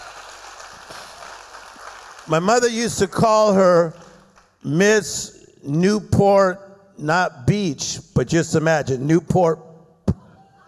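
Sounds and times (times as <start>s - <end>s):
audience clapping: 0.0s - 4.6s
speech: 2.3s - 4.0s, 4.6s - 9.7s.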